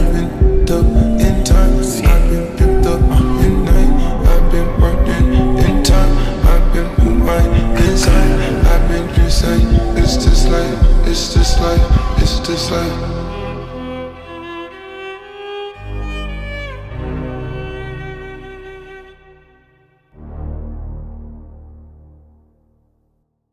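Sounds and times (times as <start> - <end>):
slowed trance music with reverb: 0.0 - 23.1.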